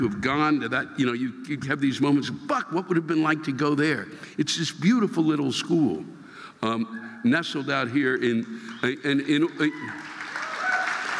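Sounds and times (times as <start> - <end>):
speech: 0.0 - 10.1
thin scattered applause from a small college audience: 8.3 - 11.1.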